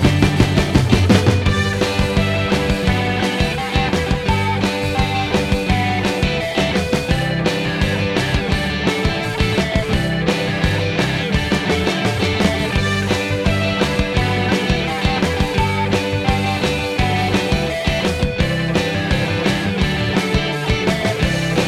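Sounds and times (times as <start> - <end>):
driving indie rock music: 0.0 - 21.6.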